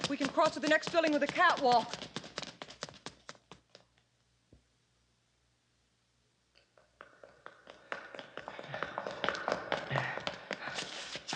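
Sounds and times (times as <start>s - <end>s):
footsteps running up stairs: 0.0s - 3.8s, 6.6s - 11.3s
speech: 0.1s - 2.2s.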